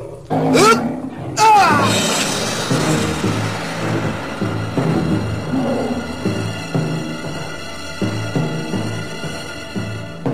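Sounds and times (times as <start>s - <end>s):
tiger roaring while pouncing at a tree: 0.0s - 2.5s, 5.4s - 6.5s
dense low rumbling background: 1.1s - 10.2s.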